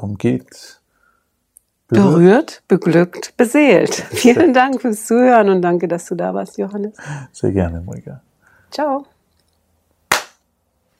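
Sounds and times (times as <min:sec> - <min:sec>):
speech: 0:00.0 - 0:00.8, 0:01.9 - 0:09.1
hand clap: 0:10.1 - 0:10.4.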